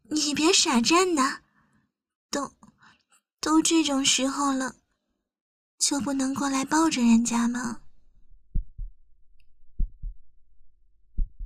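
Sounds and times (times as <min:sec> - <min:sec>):
speech: 0:00.3 - 0:01.4, 0:02.3 - 0:02.6, 0:03.4 - 0:04.8, 0:05.8 - 0:07.8
fast heartbeat: 0:08.4 - 0:09.0, 0:09.7 - 0:10.3, 0:11.1 - 0:11.4.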